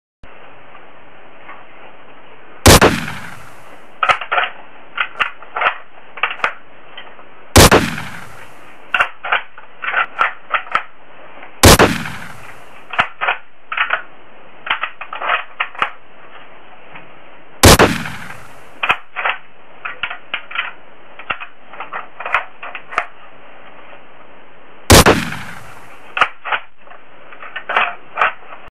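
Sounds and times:
Arisaka rifle: 2.6s - 6.6s, 7.6s - 10.9s, 11.6s - 16.0s, 17.6s - 23.2s, 24.9s - 28.5s.

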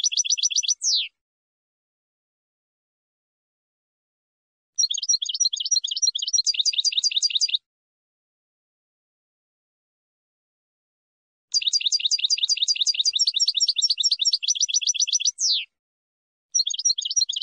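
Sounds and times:
finch song: 0.0s - 1.2s, 4.8s - 7.6s, 11.5s - 15.8s, 16.6s - 17.4s.

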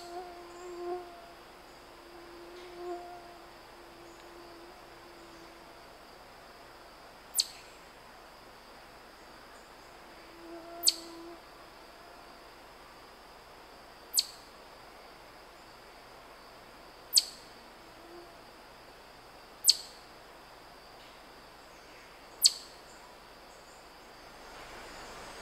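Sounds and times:
background hiss: 0.0s - 25.4s
chipmunk chip calls: 7.4s - 7.7s, 14.1s - 14.4s, 17.1s - 17.4s, 19.6s - 20.0s, 22.4s - 22.8s.

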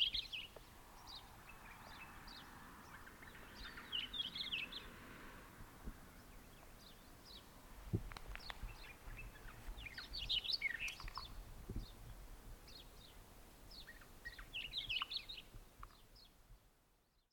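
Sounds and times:
Hume's wheatear: 0.0s - 4.9s, 8.3s - 12.0s, 12.7s - 16.2s.

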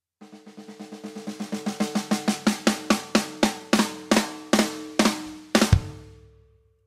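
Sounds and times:
snare drum: 0.2s - 6.3s.

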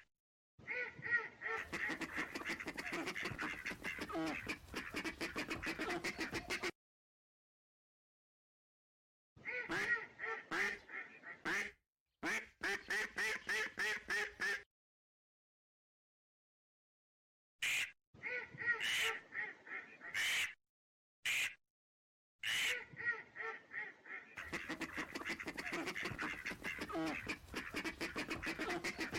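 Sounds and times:
ducks quacking: 0.7s - 6.7s, 9.4s - 14.6s, 17.6s - 20.6s, 22.4s - 29.1s.

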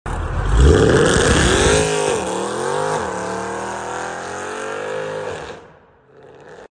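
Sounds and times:
Tucson car: 0.1s - 6.7s.

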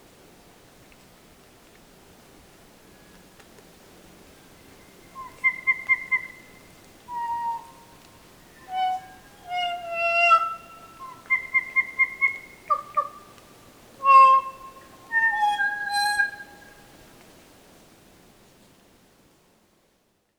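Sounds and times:
Kokako singing: 5.1s - 13.2s, 14.0s - 16.8s.

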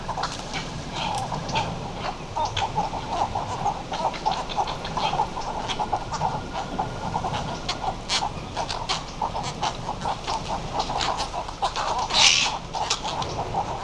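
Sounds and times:
Western cattle egret coarse buzzy croaks: 0.0s - 13.8s.

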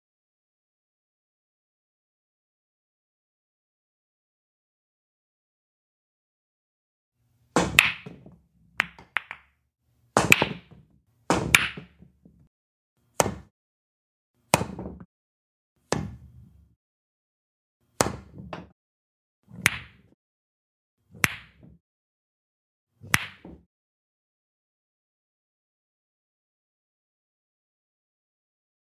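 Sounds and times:
billiard balls: 7.5s - 12.5s, 13.1s - 13.5s, 14.4s - 15.1s, 15.8s - 16.8s, 17.9s - 18.8s, 19.5s - 20.2s, 21.1s - 21.8s, 23.0s - 23.7s.

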